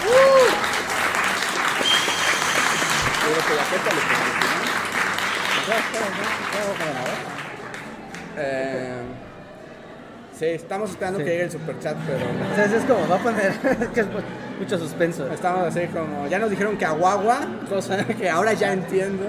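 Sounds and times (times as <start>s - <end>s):
applause: 0.0s - 8.5s
speech: 5.7s - 7.4s, 8.4s - 9.2s, 10.4s - 19.2s
laughter: 11.8s - 14.5s.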